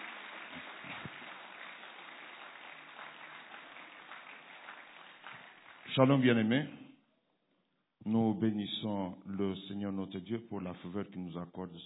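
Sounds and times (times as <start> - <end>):
church congregation applauding during a French-language worship service: 0.0 - 6.6
speech: 6.0 - 6.8, 8.1 - 11.8.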